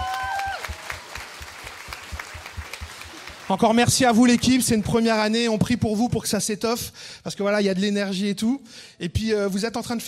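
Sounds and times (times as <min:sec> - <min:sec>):
audience applause: 0:00.0 - 0:05.1
speech: 0:03.5 - 0:10.0.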